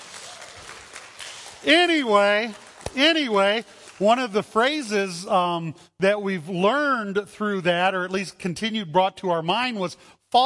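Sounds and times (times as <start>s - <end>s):
audience applause: 0.0s - 4.1s
speech: 1.6s - 10.4s.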